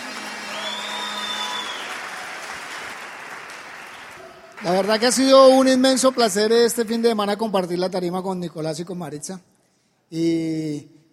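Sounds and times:
audience applause: 0.0 - 6.7
speech: 4.6 - 9.5, 10.1 - 11.0.

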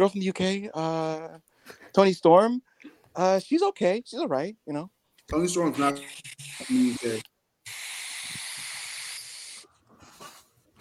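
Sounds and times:
speech: 0.0 - 7.3
vape exhale hiss: 5.9 - 10.4.

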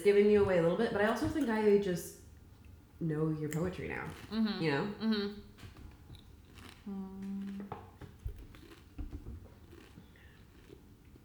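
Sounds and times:
speech: 0.0 - 2.2, 3.0 - 5.5, 6.9 - 7.7
eating Pringles potato chips: 6.4 - 7.7, 8.3 - 9.0, 9.6 - 10.9.

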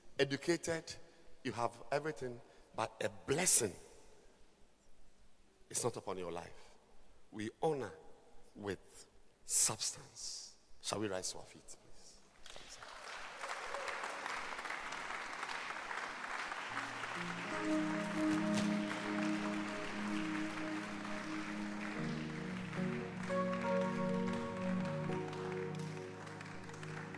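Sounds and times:
speech: 0.2 - 3.9, 5.7 - 6.7, 7.3 - 8.0, 8.6 - 11.8, 17.2 - 18.4
audience clapping hands: 12.4 - 27.1.

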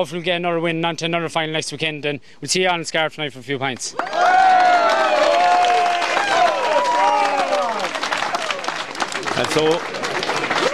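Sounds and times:
speech: 0.0 - 4.7, 9.5 - 10.0
large crowd cheering and shouting: 4.0 - 8.8, 10.4 - 10.7
large crowd clapping: 4.0 - 10.7.

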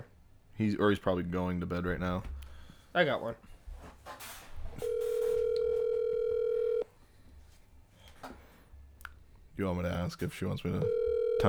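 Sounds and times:
speech: 0.6 - 3.5, 9.6 - 11.4
phone line ringing tone: 4.8 - 6.9, 10.8 - 11.4.

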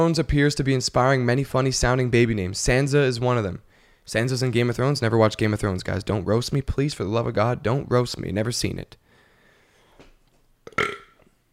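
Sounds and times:
speech: 0.0 - 9.0
burp: 10.7 - 11.3.

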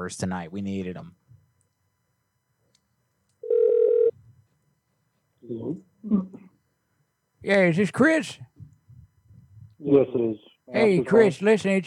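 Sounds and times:
speech: 0.0 - 1.2, 5.5 - 6.4, 7.4 - 8.5, 9.8 - 11.8
telephone tone as a number is called: 3.4 - 4.2.

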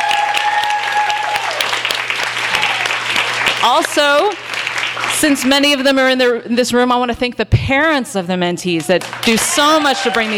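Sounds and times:
audience applauding: 0.0 - 5.7, 8.8 - 10.3
speech: 3.6 - 4.4, 5.0 - 10.3.

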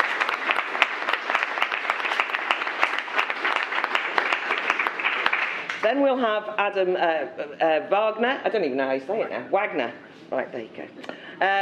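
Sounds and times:
audience applause welcoming a panel guest at a human-rights debate: 0.0 - 5.8
speech: 5.8 - 11.6.

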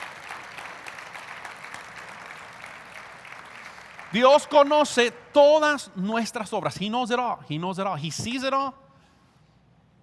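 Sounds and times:
audience applause: 0.0 - 4.4
speech: 4.1 - 8.8.

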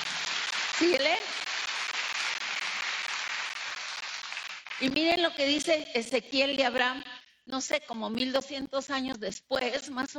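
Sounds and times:
audience applause: 0.0 - 4.9
speech: 0.8 - 1.4, 4.8 - 10.1.

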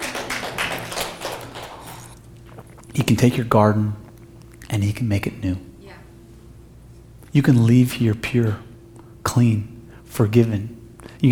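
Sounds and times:
audience clapping: 0.0 - 3.2
speech: 3.0 - 4.0, 4.8 - 5.7, 7.3 - 11.3.

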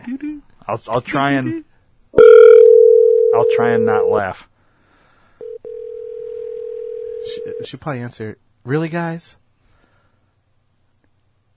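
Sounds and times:
speech: 0.1 - 1.7, 3.4 - 4.5, 7.2 - 9.4
electronic phone ringback tone: 2.2 - 4.2, 5.4 - 7.7.

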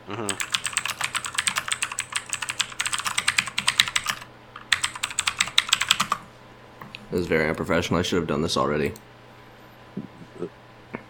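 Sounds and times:
speech: 0.1 - 0.5, 7.1 - 9.1
fingers typing on a computer keyboard: 0.3 - 6.2.

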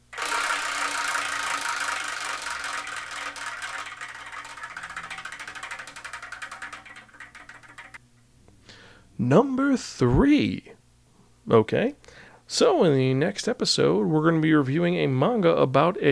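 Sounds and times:
prize wheel spinning: 0.0 - 8.0
speech: 9.2 - 10.7, 11.5 - 16.1.

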